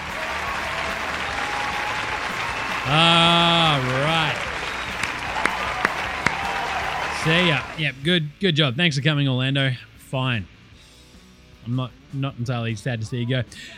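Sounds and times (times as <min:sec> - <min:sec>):
applause: 0:00.0 - 0:07.8
speech: 0:02.9 - 0:03.2, 0:07.2 - 0:10.5, 0:11.6 - 0:13.7.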